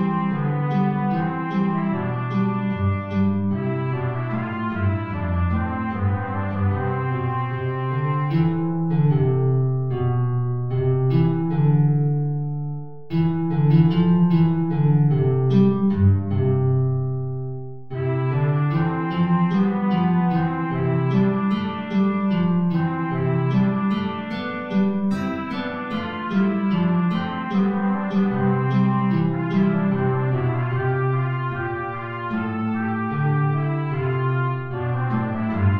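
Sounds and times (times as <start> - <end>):
trumpet in Bb playing an aria: 0.0 - 10.2, 17.8 - 35.7
low guitar: 0.0 - 35.7.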